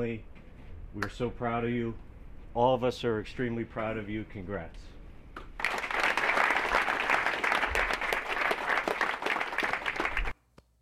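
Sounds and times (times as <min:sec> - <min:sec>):
speech: 0:00.0 - 0:00.3, 0:00.9 - 0:04.9
tepid golf-clap applause from a baseball crowd: 0:05.6 - 0:10.3.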